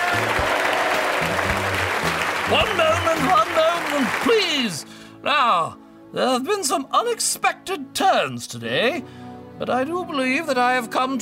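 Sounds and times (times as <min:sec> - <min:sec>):
crowd of Murfers cheering and clapping, story sound effect: 0:00.0 - 0:04.9
speech: 0:02.5 - 0:11.2.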